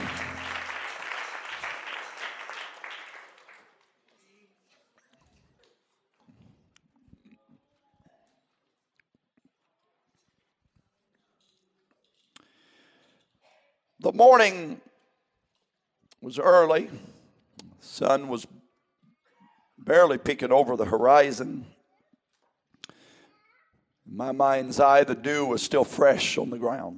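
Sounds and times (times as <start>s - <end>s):
crowd applause: 0.0s - 4.0s
speech: 14.0s - 14.9s, 16.2s - 17.1s, 17.8s - 18.5s, 19.9s - 21.8s, 24.1s - 26.9s.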